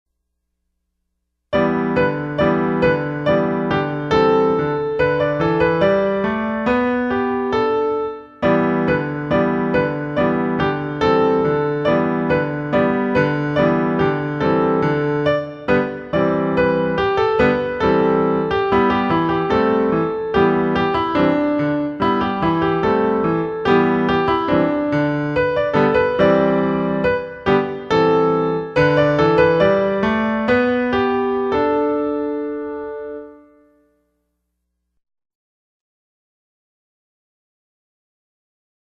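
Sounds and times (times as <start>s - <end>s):
music: 1.5s - 35.0s.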